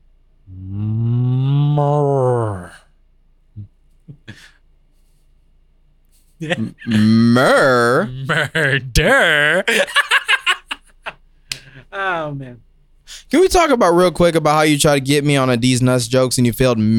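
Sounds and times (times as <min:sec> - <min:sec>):
person imitating a cow mooing: 0:00.5 - 0:02.9, 0:06.8 - 0:08.3
speech: 0:06.4 - 0:10.0, 0:12.0 - 0:12.6, 0:13.3 - 0:16.9
laughter: 0:06.4 - 0:11.2.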